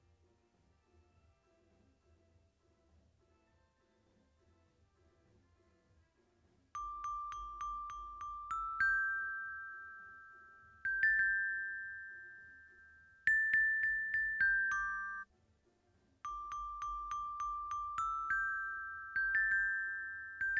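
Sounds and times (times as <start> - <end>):
xylophone: 6.8 - 15.3, 16.2 - 20.5.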